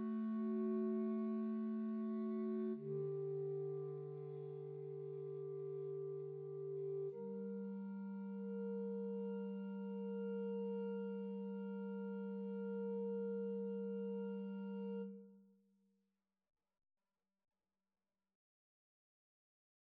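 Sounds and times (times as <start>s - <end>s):
clarinet trio: 0.0s - 15.4s.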